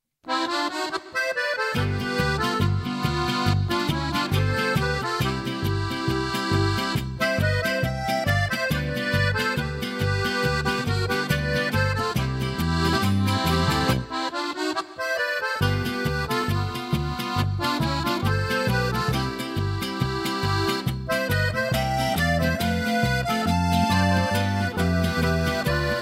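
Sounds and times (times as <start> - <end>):
accordion playing a polka: 0.3 - 26.0.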